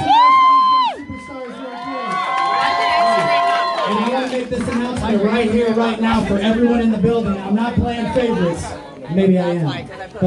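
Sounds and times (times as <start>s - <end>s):
crowd cheering and whooping: 0.0s - 4.4s
speech: 5.1s - 10.2s.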